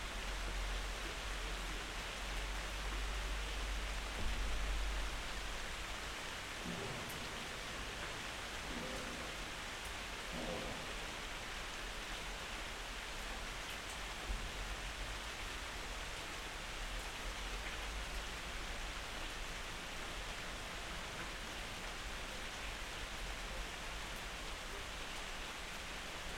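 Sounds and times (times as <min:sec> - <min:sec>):
rain: 0:00.0 - 0:26.3
thunder: 0:06.6 - 0:08.0, 0:10.3 - 0:11.1.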